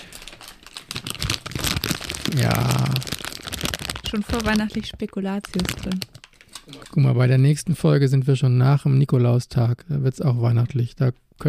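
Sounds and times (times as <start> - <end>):
paper goodie bag crinkling: 0.0 - 6.9
speech: 2.3 - 3.2, 4.1 - 6.1, 6.9 - 11.4.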